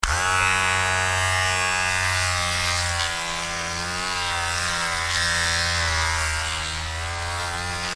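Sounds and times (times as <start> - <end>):
electric shaver: 0.0 - 7.9.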